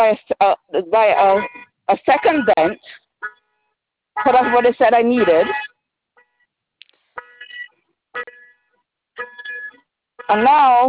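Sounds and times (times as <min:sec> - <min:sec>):
speech: 0:00.0 - 0:03.0, 0:04.2 - 0:05.7, 0:08.2 - 0:08.4, 0:10.3 - 0:10.8
car alarm going off: 0:01.3 - 0:06.5, 0:07.2 - 0:10.5.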